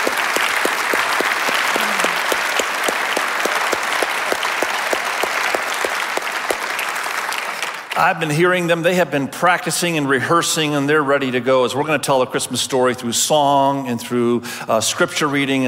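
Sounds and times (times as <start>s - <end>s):
crowd applauding: 0.0s - 8.3s
sharp rhythmic claps: 0.0s - 8.3s
speech: 8.0s - 15.6s.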